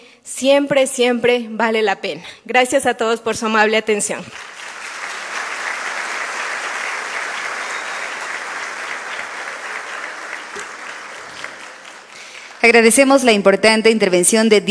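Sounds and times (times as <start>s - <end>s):
speech: 0.3s - 4.6s, 12.6s - 14.6s
audience applause: 4.3s - 13.2s.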